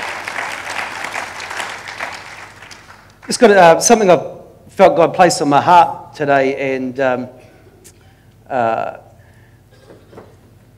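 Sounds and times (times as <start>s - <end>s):
church audience applause at a morning service: 0.0s - 3.4s
speech: 3.3s - 7.4s, 8.5s - 9.0s.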